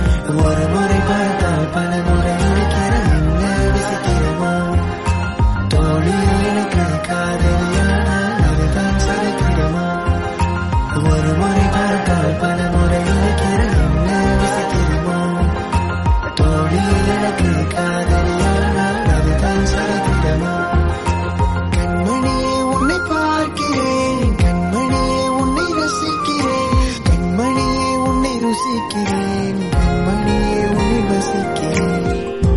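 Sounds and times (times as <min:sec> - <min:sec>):
Tamil love song: 0:00.0 - 0:32.5.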